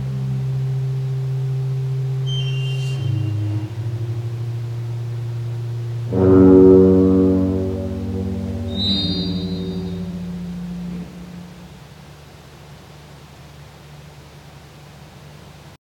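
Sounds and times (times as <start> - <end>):
improvised music: 0.0 - 11.8.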